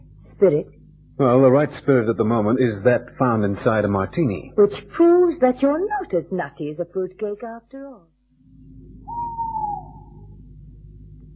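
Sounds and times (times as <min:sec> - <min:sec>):
low rumbling background: 0:00.0 - 0:11.3
speech: 0:00.4 - 0:08.1
owl hooting: 0:09.0 - 0:10.4.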